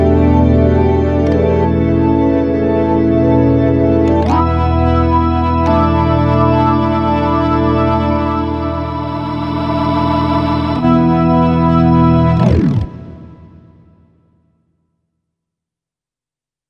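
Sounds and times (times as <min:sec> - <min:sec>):
Hammond organ playing rock: 0:00.0 - 0:13.8.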